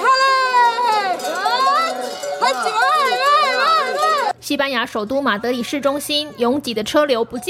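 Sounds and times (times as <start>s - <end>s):
flock of sheep with clanging bells: 0.0s - 4.3s
speech: 2.5s - 2.8s, 4.5s - 7.4s.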